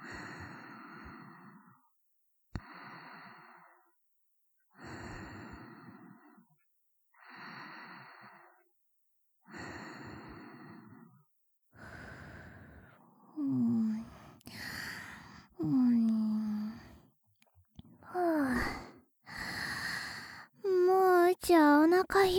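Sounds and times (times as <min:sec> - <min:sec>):
person breathing in sleep: 0:00.0 - 0:01.8, 0:02.6 - 0:04.0, 0:04.8 - 0:06.5, 0:07.2 - 0:08.7, 0:09.5 - 0:11.2, 0:11.8 - 0:17.1, 0:18.0 - 0:20.6
person sleep talking: 0:13.3 - 0:17.0, 0:18.0 - 0:22.3.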